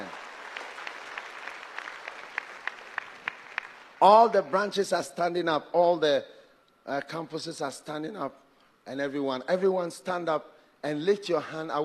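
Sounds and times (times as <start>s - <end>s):
audience clapping: 0.0s - 4.5s
speech: 4.0s - 11.8s.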